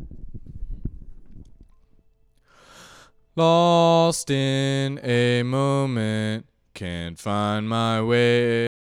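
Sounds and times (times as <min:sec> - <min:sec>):
male ambient lead vocal: 0:03.3 - 0:08.7.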